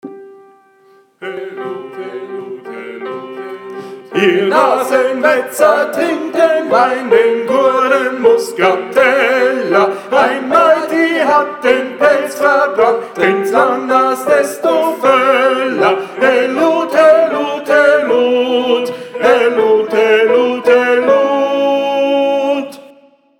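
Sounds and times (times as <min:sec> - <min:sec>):
tenor singing: 0:00.0 - 0:23.2.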